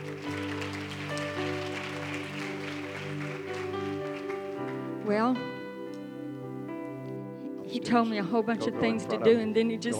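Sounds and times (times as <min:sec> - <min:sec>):
audience hand clapping: 0:00.0 - 0:05.6
speech: 0:05.1 - 0:05.6, 0:07.8 - 0:09.9.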